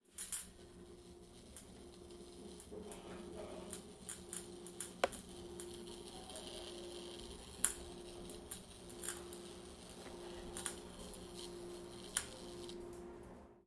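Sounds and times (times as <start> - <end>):
faulty lamp buzzing: 0.0 - 13.6.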